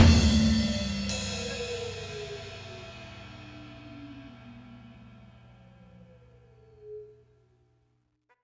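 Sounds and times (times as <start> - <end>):
duet: 0.0 - 5.3.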